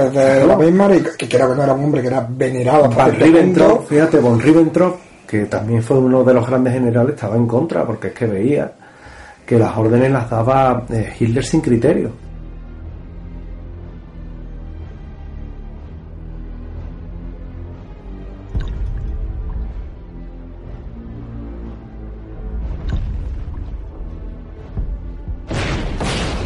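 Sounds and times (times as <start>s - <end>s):
speech: 0.0s - 8.8s, 9.5s - 12.2s
artillery fire booms in a dramatized wartime scene: 24.8s - 26.4s.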